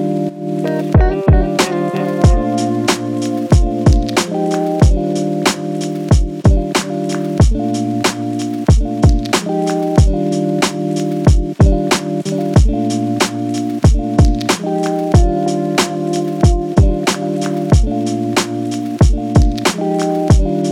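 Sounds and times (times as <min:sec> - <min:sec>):
looping background music: 0:00.0 - 0:20.6.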